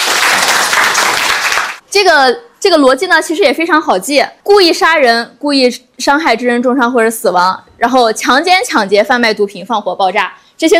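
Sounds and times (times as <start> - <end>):
audience applause: 0.0 - 1.8
speech: 2.0 - 10.7.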